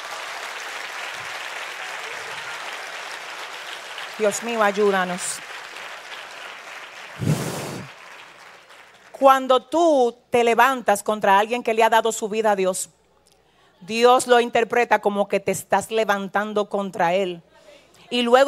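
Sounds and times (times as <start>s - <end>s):
audience applause: 0.0s - 9.2s
speech: 4.2s - 5.5s, 9.2s - 13.0s, 13.8s - 17.5s, 18.1s - 18.4s.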